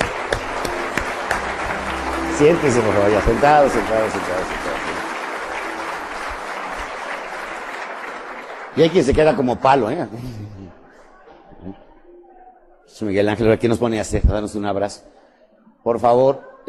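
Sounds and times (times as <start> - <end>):
audience applause: 0.0 - 10.0
speech: 2.4 - 5.0, 8.8 - 10.8, 11.6 - 11.8, 12.9 - 15.2, 15.8 - 16.6.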